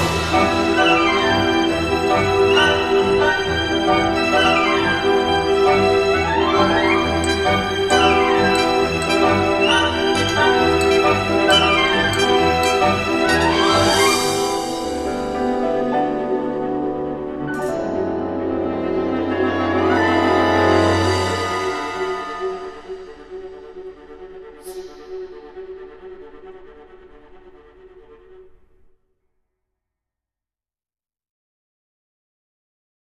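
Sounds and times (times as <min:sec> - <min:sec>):
orchestra playing: 0:00.0 - 0:24.0.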